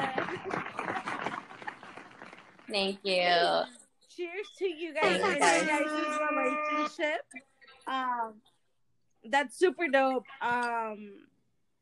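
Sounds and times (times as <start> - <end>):
hands clapping: 0.0 - 3.0
speech: 2.7 - 8.5, 9.2 - 11.3.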